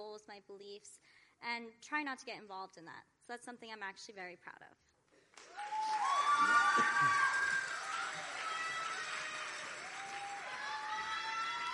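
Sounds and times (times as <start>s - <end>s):
speech: 0.2s - 5.7s, 6.4s - 7.3s
pageant audience applauding contestants: 5.4s - 11.7s.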